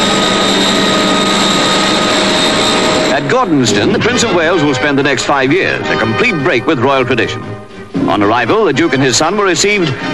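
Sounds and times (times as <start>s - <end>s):
Heron aircraft engines: 0.0s - 6.5s, 9.2s - 10.1s
speech: 3.4s - 10.1s.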